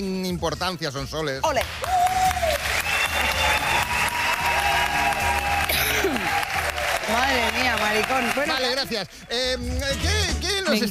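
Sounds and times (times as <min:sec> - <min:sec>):
speech: 0:00.0 - 0:02.0, 0:07.1 - 0:10.8
audience applause: 0:01.6 - 0:09.4.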